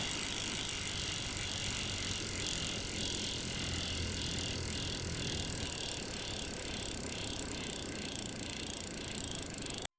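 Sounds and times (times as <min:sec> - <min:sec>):
biker riding: 0:00.0 - 0:09.9.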